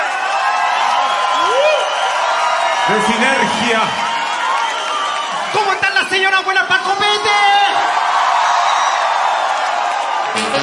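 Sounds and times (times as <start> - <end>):
live audience at a cumbia concert cheering and applauding: 0.0 - 10.6
person whooping: 1.2 - 2.1
speech: 2.9 - 4.1, 5.5 - 8.0.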